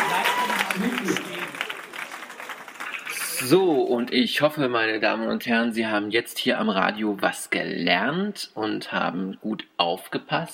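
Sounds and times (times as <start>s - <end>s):
audience applause at a live radio comedy show: 0.0s - 3.9s
speech: 3.4s - 10.5s.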